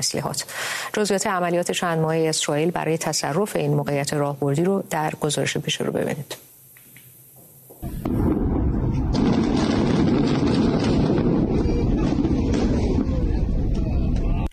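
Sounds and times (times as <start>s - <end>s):
speech: 0.0s - 6.5s
huge explosion: 7.8s - 14.3s.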